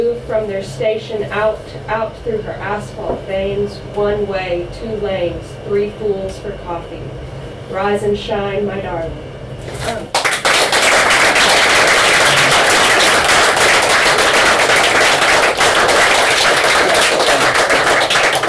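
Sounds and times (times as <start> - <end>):
speech: 0.1 - 10.2
crowd applauding: 10.1 - 18.4.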